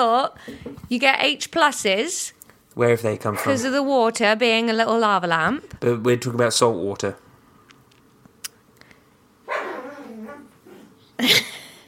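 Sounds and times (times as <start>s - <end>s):
speech: 0.0s - 7.2s, 11.2s - 11.5s
dog barking: 9.5s - 10.5s
dog whining and yipping while chasing its own tail: 9.5s - 11.0s.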